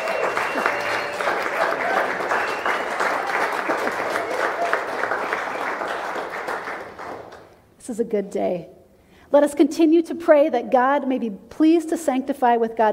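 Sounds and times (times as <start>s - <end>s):
audience clapping: 0.0s - 7.6s
speech: 7.9s - 12.9s.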